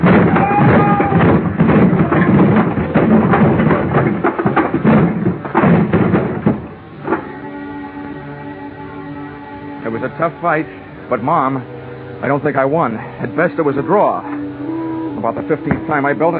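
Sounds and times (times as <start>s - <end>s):
dolly crashing into stacked wooden boxes: 0.0s - 8.5s
speech: 10.2s - 14.4s, 15.2s - 16.3s.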